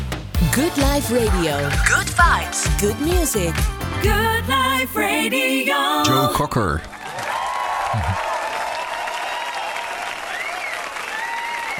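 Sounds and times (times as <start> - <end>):
speech: 0.4 - 6.9
crowd applause: 6.7 - 11.7
faint whistles or cheers: 7.0 - 11.7
laughter: 7.9 - 8.2.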